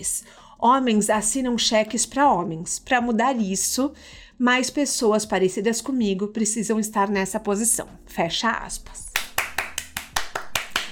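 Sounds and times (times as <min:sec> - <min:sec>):
speech: 0:00.0 - 0:09.0
single person clapping: 0:09.1 - 0:10.9.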